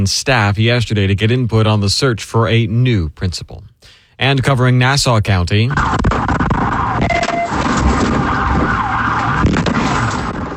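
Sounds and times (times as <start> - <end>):
speech: 0.0 - 6.3
police siren wailing during a vehicle pursuit in Fernandina Beach: 5.8 - 10.5.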